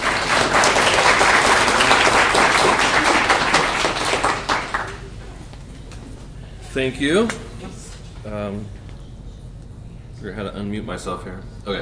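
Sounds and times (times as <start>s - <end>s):
church congregation applauding to welcome guest speakers: 0.0s - 5.4s
speech: 6.8s - 7.4s, 8.3s - 8.8s, 10.2s - 11.8s.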